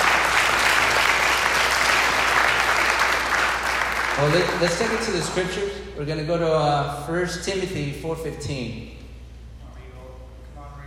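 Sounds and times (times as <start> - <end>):
audience applause: 0.0 - 5.7
speech: 4.2 - 9.0.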